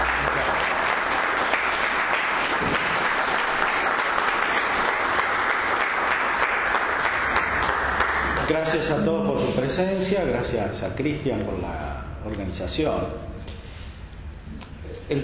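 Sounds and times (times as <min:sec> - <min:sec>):
audience applause welcoming a priest before a lecture: 0:00.0 - 0:08.6
speech: 0:08.5 - 0:13.3, 0:15.1 - 0:15.2.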